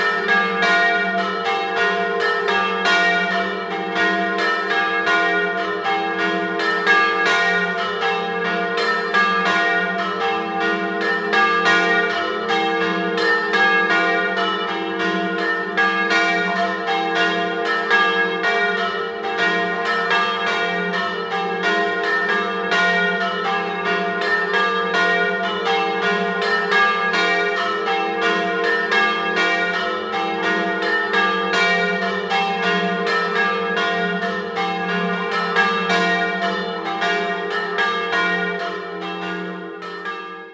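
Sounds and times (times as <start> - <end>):
church bells ringing in Canussio: 0.0 - 40.5.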